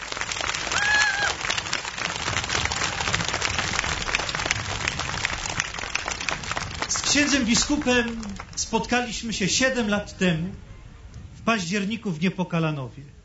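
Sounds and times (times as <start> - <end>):
children applauding: 0.0 - 8.7
speech: 7.1 - 10.6, 11.5 - 13.2.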